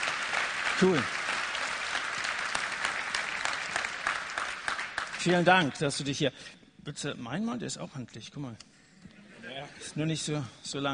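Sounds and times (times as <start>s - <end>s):
audience applause: 0.0s - 5.5s
speech: 0.8s - 1.2s, 5.2s - 8.8s, 9.7s - 10.9s.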